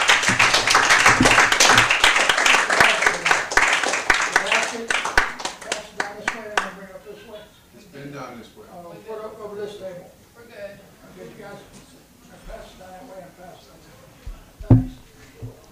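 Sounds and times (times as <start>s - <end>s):
audience applause for a speaker at a prose and poetry reading: 0.0s - 6.7s.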